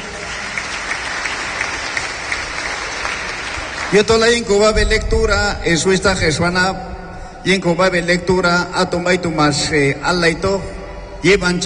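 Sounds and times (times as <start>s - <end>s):
people clapping at a Pentecostal church service: 0.0s - 4.6s
speech: 3.9s - 11.6s.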